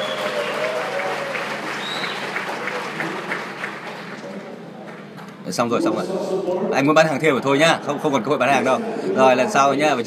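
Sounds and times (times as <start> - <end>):
audience applause in a group training class: 0.0 - 5.0
speech: 5.5 - 10.0.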